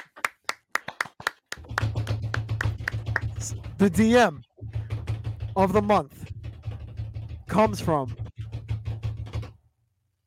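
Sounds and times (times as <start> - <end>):
people clapping hands in a quick even rhythm: 0.0 - 3.7
speech: 3.4 - 4.5, 5.6 - 6.2, 7.6 - 8.2.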